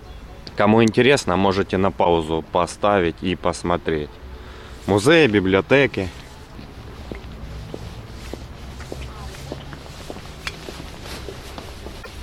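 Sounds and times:
speech: 0.6 - 4.2, 4.8 - 6.2
footsteps climbing up to a railway platform in Bakhmut: 4.8 - 12.2.

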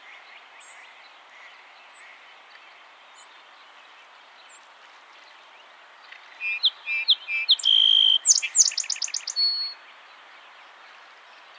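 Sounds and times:
song sparrow song: 6.4 - 9.8.

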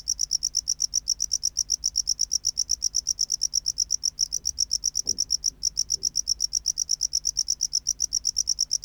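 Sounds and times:
tropical house cricket chirping: 0.0 - 8.8
faint low thump: 4.4 - 6.3.

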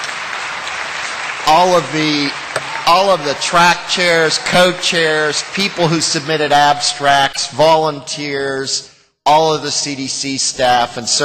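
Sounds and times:
audience applause at a public health conference meeting: 0.0 - 6.5
speech: 1.5 - 11.2.

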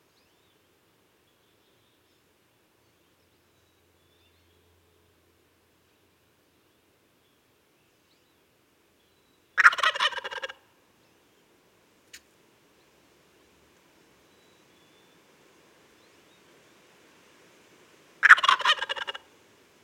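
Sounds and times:
Wild turkey gobble: 9.6 - 10.6, 18.2 - 19.3.

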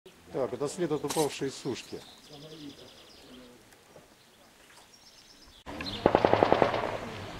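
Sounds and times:
speech: 0.3 - 2.7
faint bird calls: 1.0 - 6.2
automatic gunfire: 6.0 - 7.1.

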